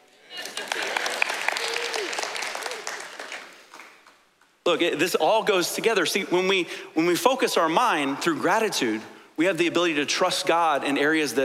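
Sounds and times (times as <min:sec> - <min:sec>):
audience applause: 0:00.3 - 0:04.2
speech: 0:04.7 - 0:11.4.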